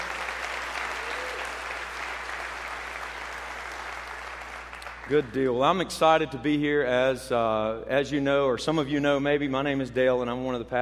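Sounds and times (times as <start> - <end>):
church congregation applauding to welcome the church family: 0.0 - 5.4
speech: 5.1 - 10.7.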